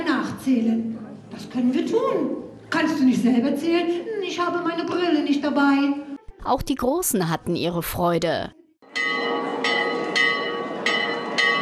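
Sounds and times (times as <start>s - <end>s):
speech: 0.5s - 8.6s
castle tower bell ringing: 8.8s - 11.5s.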